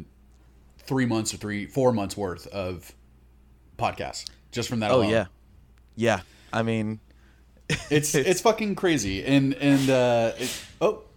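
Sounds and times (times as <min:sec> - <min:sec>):
speech: 0:00.9 - 0:03.0, 0:03.8 - 0:05.4, 0:06.0 - 0:07.1, 0:07.7 - 0:11.1
person sneezing: 0:09.6 - 0:10.9.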